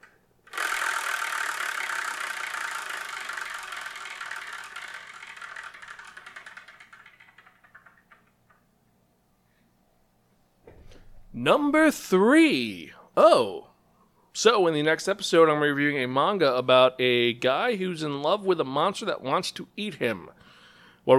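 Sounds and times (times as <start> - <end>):
prize wheel spun to choose the next manga title: 0.0 - 8.6
speech: 11.4 - 13.6, 14.4 - 20.4.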